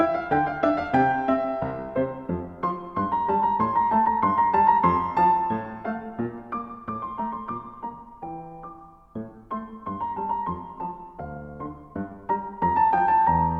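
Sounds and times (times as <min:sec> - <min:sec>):
piano piece: 0:00.0 - 0:13.5.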